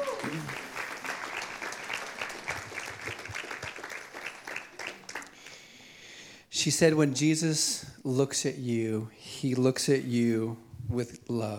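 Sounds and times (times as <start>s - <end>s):
audience applause: 0.0s - 5.6s
speech: 6.6s - 11.5s.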